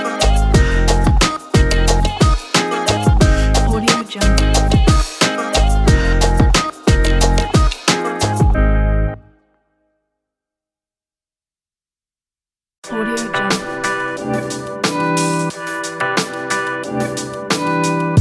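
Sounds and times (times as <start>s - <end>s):
lo-fi music: 0.0s - 9.3s, 12.9s - 18.1s.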